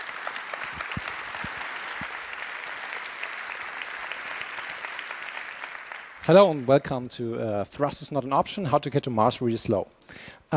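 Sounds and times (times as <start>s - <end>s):
crowd applauding: 0.0s - 7.1s
speech: 6.3s - 10.5s.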